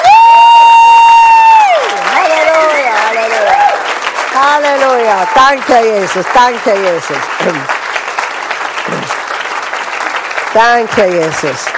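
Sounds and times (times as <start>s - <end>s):
audience cheering: 0.0s - 5.8s
audience applauding: 0.0s - 11.7s
speech: 5.3s - 7.8s, 10.6s - 11.7s.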